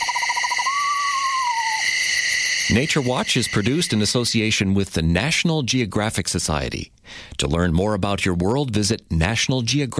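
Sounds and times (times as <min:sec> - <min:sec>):
pair of screech owls calling back and forth with undulating trill: 0:00.0 - 0:04.0
speech: 0:02.7 - 0:09.9.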